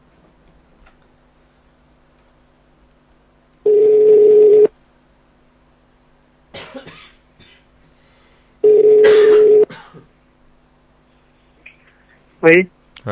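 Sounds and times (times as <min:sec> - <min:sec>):
telephone ringback tones: 0:03.7 - 0:04.7, 0:08.6 - 0:09.7
throat-clearing or cough-like noises: 0:06.5 - 0:07.7, 0:09.0 - 0:10.2
speech: 0:12.4 - 0:13.1.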